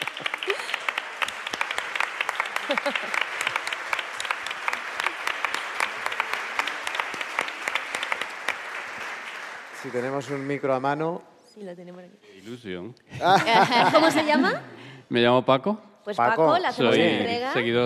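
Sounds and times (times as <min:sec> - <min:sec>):
audience applause: 0:00.0 - 0:11.0
laughter: 0:02.5 - 0:03.7, 0:13.1 - 0:14.8
speech: 0:02.7 - 0:03.3, 0:09.8 - 0:17.8.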